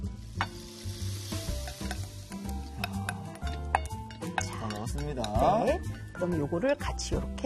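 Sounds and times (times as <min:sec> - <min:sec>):
butter sizzling in a pan with flaked Spanish mackerel fillet and chives: 0:00.0 - 0:05.7
knocks and scrapes from stirring chives into a pan: 0:01.6 - 0:06.0
speech: 0:04.8 - 0:07.4.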